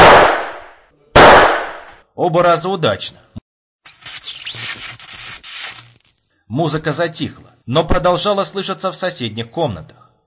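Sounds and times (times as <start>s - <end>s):
gunshots at loudspeakers: 0.0s - 2.0s
speech: 2.2s - 3.4s, 6.5s - 10.1s.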